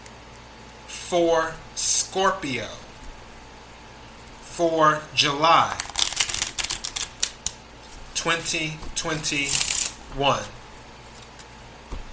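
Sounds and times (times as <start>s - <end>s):
speech: 1.1s - 2.9s, 4.6s - 5.9s, 8.2s - 10.6s
tarot cards shuffled and drawn for a reading: 5.7s - 12.1s.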